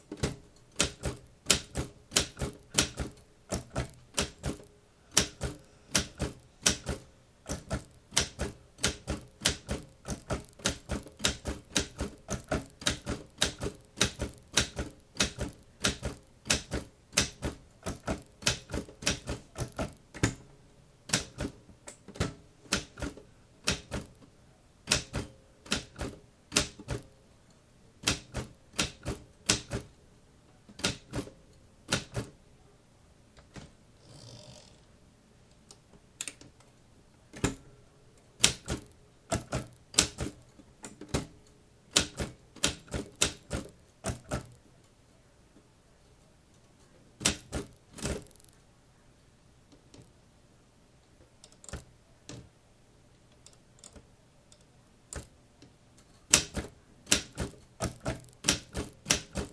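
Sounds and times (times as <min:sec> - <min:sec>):
keyboard typing: 0:00.1 - 0:20.4, 0:21.1 - 0:24.2, 0:24.9 - 0:27.1, 0:28.0 - 0:29.9, 0:30.7 - 0:32.4, 0:38.4 - 0:41.3, 0:41.9 - 0:44.6, 0:47.2 - 0:48.6, 0:56.2 - 0:59.5.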